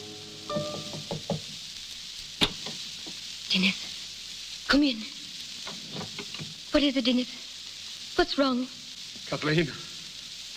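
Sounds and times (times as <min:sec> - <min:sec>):
door opening: 0:00.5 - 0:01.4
quiet knocking on a door: 0:00.5 - 0:01.6
speech: 0:03.5 - 0:03.9, 0:04.7 - 0:05.2, 0:06.8 - 0:07.4, 0:08.2 - 0:09.9.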